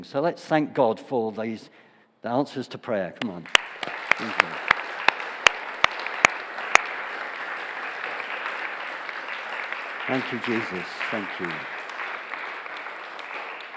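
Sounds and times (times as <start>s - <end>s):
speech: 0.0s - 4.8s, 10.1s - 11.8s
audience clapping and applauding: 3.2s - 13.7s.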